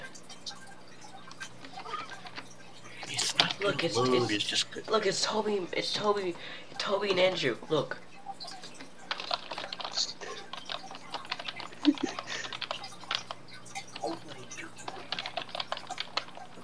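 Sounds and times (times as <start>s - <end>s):
typing on a computer keyboard: 0.0s - 4.4s, 8.3s - 16.6s
speech: 3.6s - 8.1s.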